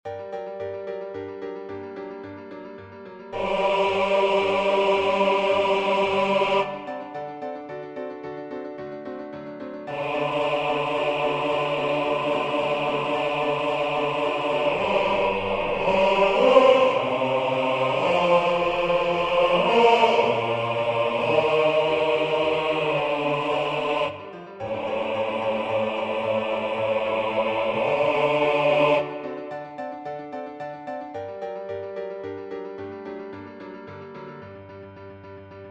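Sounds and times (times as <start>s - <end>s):
bass part of a choral piece: 3.4s - 7.2s, 9.9s - 29.5s.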